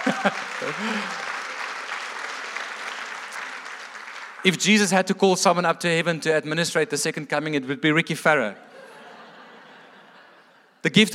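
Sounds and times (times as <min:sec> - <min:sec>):
laughter: 0:00.0 - 0:01.7, 0:08.6 - 0:10.8
audience cheering and applauding: 0:00.0 - 0:04.7
speech: 0:00.1 - 0:01.3, 0:04.4 - 0:08.7, 0:10.8 - 0:11.1.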